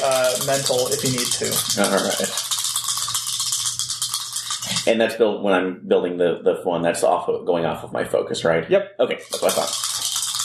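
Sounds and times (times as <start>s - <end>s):
dice being rolled: 0.0s - 4.9s, 9.2s - 10.4s
speech: 0.4s - 2.6s, 4.8s - 9.9s.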